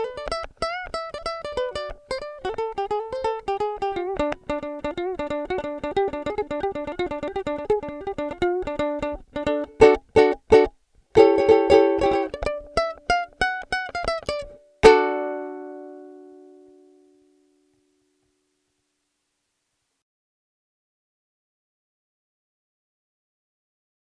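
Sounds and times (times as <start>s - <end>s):
ukulele: 0.0s - 18.0s.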